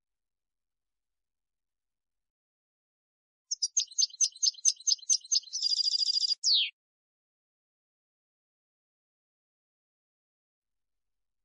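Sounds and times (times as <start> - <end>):
European goldfinch song: 3.5 - 6.8.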